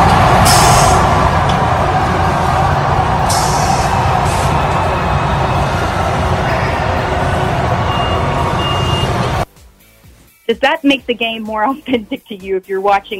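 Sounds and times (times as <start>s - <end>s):
artificial crowd noise played in empty ballpark: 0.0s - 9.5s
speech: 10.5s - 13.1s.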